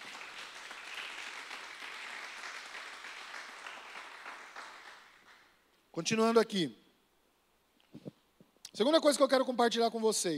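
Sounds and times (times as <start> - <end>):
audience applauding: 0.0 - 5.5
speech: 6.0 - 6.8, 8.8 - 10.3.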